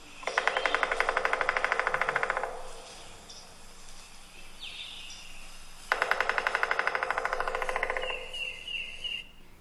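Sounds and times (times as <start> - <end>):
faint chirps: 0.0 - 1.5, 2.6 - 5.8, 7.6 - 9.6
bird's mating call of rapid loud knocking: 0.2 - 3.5, 5.8 - 9.2.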